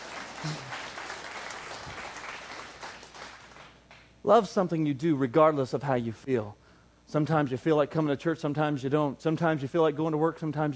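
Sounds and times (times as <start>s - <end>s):
crowd audience clapping and applauding: 0.0s - 4.1s
speech: 0.4s - 0.7s, 4.2s - 10.7s.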